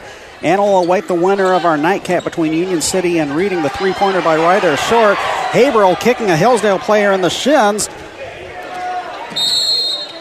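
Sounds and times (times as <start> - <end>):
basketball crowd noise: 0.0 - 10.2
speech: 0.4 - 8.1
referee's whistle at a high school basketball game: 9.3 - 10.2.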